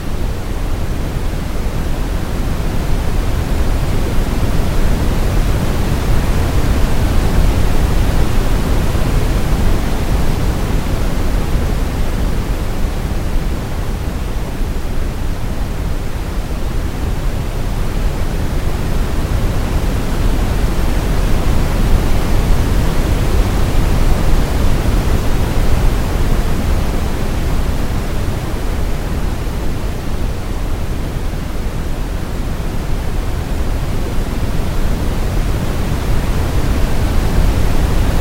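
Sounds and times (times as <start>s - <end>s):
oscillating pink noise: 0.0s - 38.1s.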